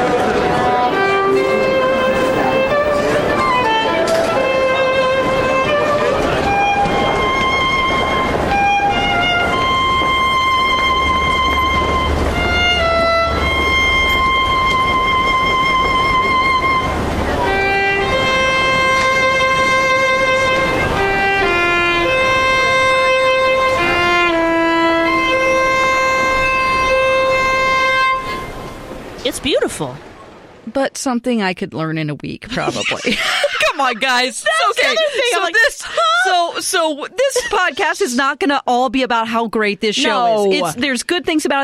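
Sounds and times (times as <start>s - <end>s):
solo violin playing a slow melody in a subway: 0.0s - 28.9s
low rumbling subway train noise: 0.0s - 30.6s
speech: 31.0s - 41.6s
laughter: 32.5s - 38.0s.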